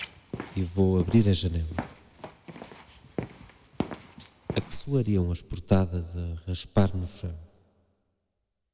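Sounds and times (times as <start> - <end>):
footsteps walking across a room: 0.0 - 5.0
speech: 0.6 - 1.9, 4.8 - 7.5.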